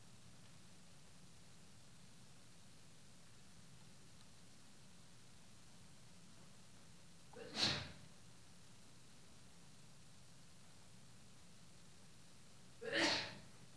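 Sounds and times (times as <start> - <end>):
sneezes: 7.3 - 8.0, 12.8 - 13.5.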